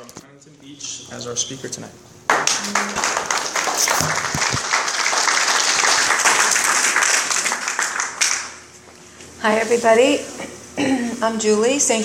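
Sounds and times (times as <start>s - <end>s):
speech: 0.8s - 3.0s, 3.8s - 4.7s, 9.4s - 12.0s
audience applause welcoming a guest speaker at an evening meeting: 2.3s - 8.6s.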